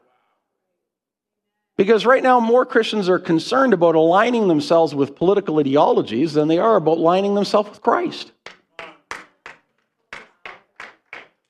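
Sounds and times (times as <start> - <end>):
speech: 1.8 - 8.4
hand claps: 8.3 - 11.4.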